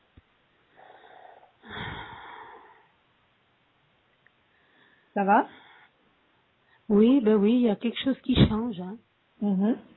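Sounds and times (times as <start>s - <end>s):
deep breath drawn in during spoken affirmations: 0.7s - 3.0s, 4.5s - 6.0s
speech: 5.2s - 5.6s, 6.9s - 9.9s.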